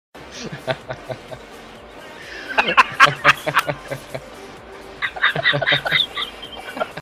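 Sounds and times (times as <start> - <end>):
laughing: 2.5 - 4.2, 5.0 - 7.0.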